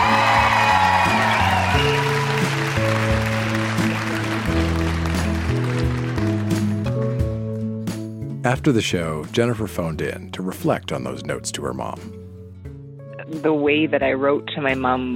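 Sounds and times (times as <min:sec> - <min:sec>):
audience applause: 0:00.0 - 0:07.0
speech: 0:08.4 - 0:12.2, 0:13.4 - 0:15.1.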